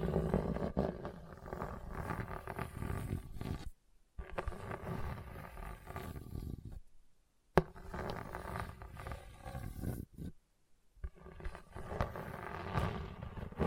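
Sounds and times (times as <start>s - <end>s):
scratching on hard bumpy surface: 0.0s - 6.9s, 7.6s - 10.4s, 11.0s - 13.6s.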